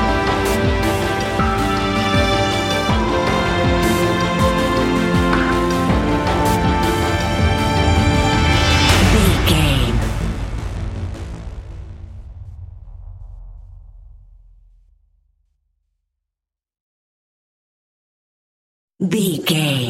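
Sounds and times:
metal music: 0.0 - 13.7.

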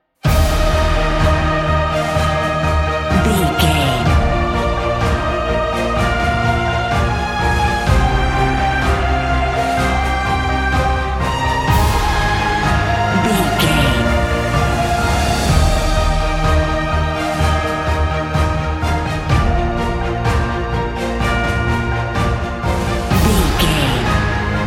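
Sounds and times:
cinematic corporate music: 0.2 - 24.6.

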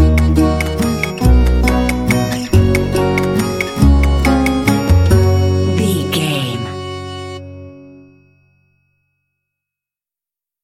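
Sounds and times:
quirky tiny waltz: 0.0 - 7.3.

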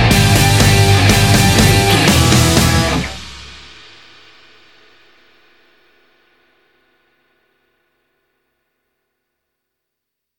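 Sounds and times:
raw rock n roll music: 0.0 - 3.6.

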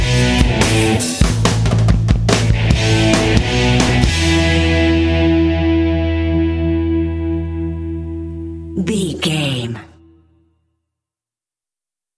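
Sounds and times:
pumping energetic fun indie alternative rock music: 0.0 - 8.9.

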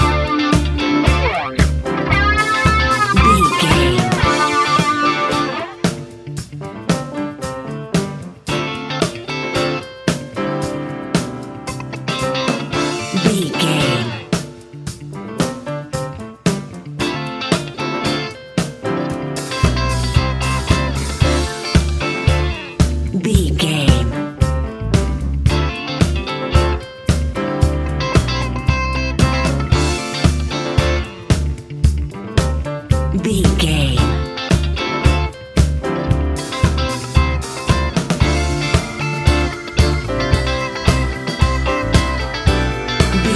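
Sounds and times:
disco music: 0.0 - 43.3.

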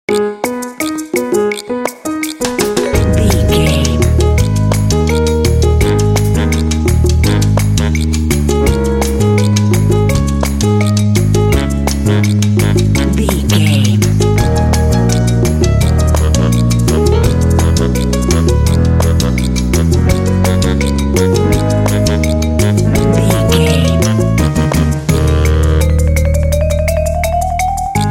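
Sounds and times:
cute playful Latin theme: 0.1 - 28.1.

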